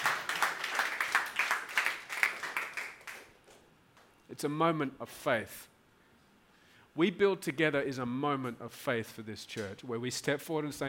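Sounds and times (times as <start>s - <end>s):
audience clapping: 0.0s - 4.1s
speech: 4.4s - 5.7s, 7.0s - 10.8s.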